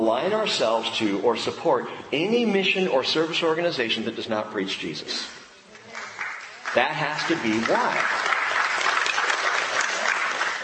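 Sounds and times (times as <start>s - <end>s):
speech: 0.0s - 5.4s, 6.8s - 8.3s
church congregation applause: 5.9s - 10.6s.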